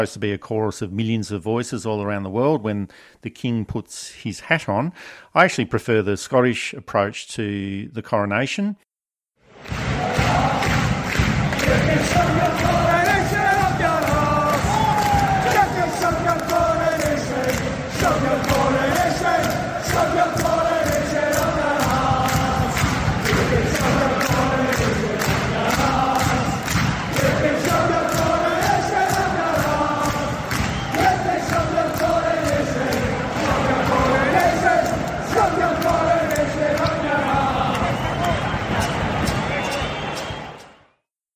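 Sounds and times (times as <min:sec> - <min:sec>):
speech: 0:00.0 - 0:08.8
crowd chanting at a Celtic versus Glasgow Rangers football game in Scotland: 0:09.5 - 0:40.8.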